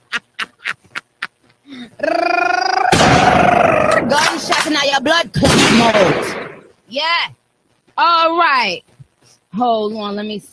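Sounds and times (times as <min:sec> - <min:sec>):
laughter: 0:00.0 - 0:01.8
gunshot: 0:02.9 - 0:04.7, 0:05.4 - 0:06.7
speech: 0:05.0 - 0:07.4, 0:08.0 - 0:08.9, 0:09.5 - 0:10.5.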